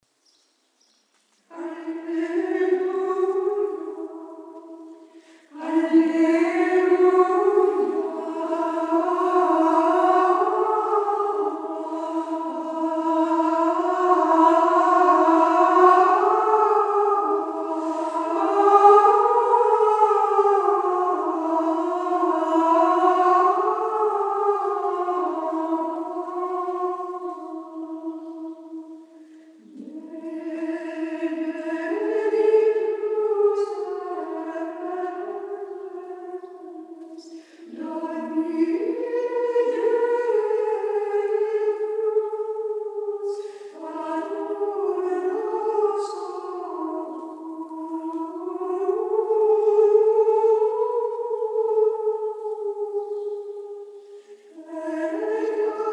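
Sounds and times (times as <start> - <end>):
sacred choral chant: 1.5 - 55.9.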